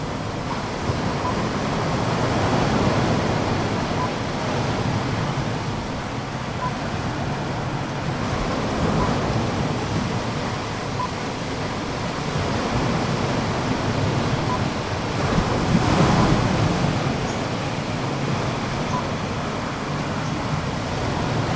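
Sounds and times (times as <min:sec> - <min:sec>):
waves at Lovina Beach: 0:00.0 - 0:21.5
wind at Lovina Beach: 0:00.0 - 0:21.5.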